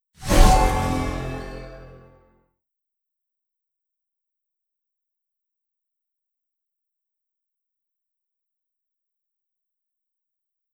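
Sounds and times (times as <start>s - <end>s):
berserk skill spell sound effect: 0.2s - 2.2s.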